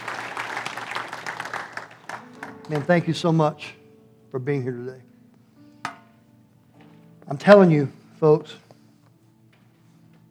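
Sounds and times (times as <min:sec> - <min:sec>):
audience clapping: 0:00.0 - 0:03.6
speech: 0:02.7 - 0:05.1, 0:07.3 - 0:08.6.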